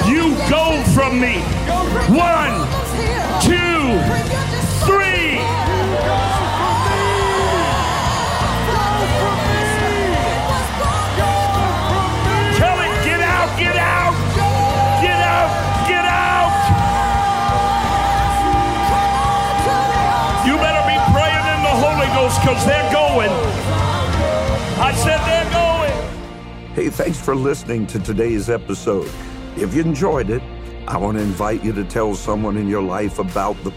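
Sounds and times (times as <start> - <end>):
audience shouting together: 0.0 - 26.3
speech: 26.8 - 33.7.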